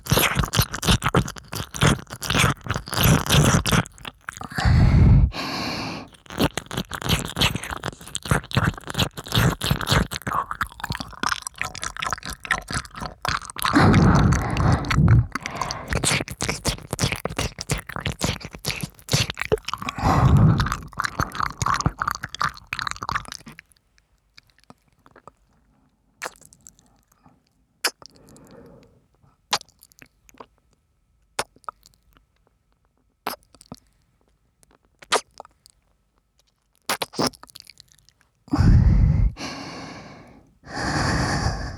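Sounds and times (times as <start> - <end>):
right ear licking: 0.0 - 23.6, 38.5 - 41.7.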